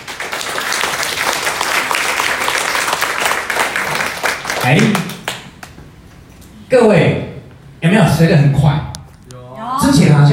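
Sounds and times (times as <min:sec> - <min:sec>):
audience applause: 0:00.0 - 0:05.6
speech: 0:04.6 - 0:05.1, 0:06.7 - 0:07.2, 0:08.2 - 0:08.8.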